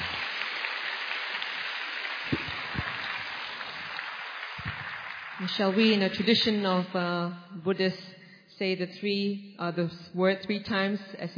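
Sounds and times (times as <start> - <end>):
audience applause: 0.0 - 6.1
speech: 5.4 - 11.3.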